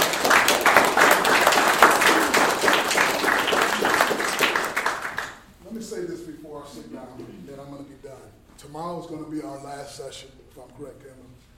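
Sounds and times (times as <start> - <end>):
audience hand clapping: 0.0 - 5.6
speech: 8.2 - 11.5.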